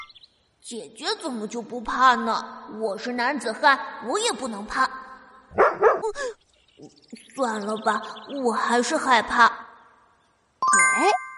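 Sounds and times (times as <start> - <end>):
speech: 0.7 - 5.0, 6.0 - 9.6, 10.7 - 11.2
dog barking: 5.5 - 6.1.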